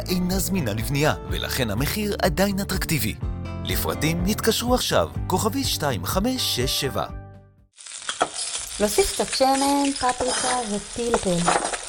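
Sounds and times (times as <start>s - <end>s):
speech: 0.1s - 7.2s, 8.8s - 11.6s
food frying in oil with paprika and pepper on a gas stove: 7.7s - 11.8s.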